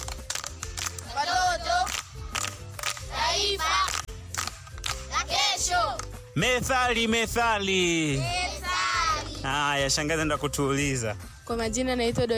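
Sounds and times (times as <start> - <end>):
schoolchildren clapping at a primary school: 0.0 - 6.2
children singing and chanting: 1.1 - 1.9, 3.0 - 4.1, 5.0 - 6.1, 8.1 - 9.6
speech: 6.4 - 8.4, 9.4 - 12.3.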